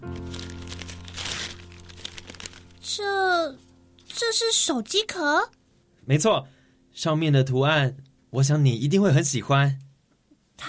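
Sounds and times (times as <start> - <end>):
gift wrapping being unwrapped: 0.0 - 3.2
speech: 2.9 - 9.8.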